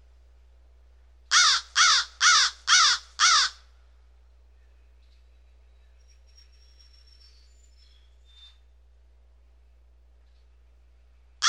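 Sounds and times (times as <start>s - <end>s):
low electrical hum: 0.0s - 11.4s
bird whistled calls: 5.8s - 8.7s.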